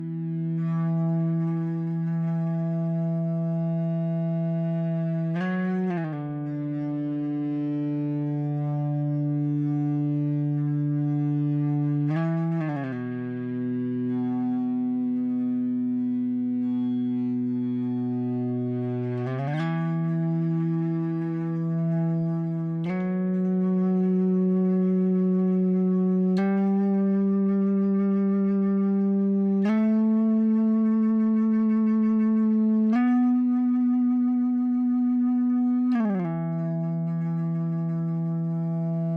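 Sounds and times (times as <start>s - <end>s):
dry EBow guitar drone: 0.0s - 39.1s.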